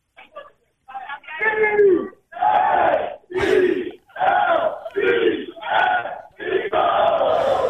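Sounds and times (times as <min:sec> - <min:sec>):
crowd of football fans chanting cheer: 0:02.3 - 0:07.6.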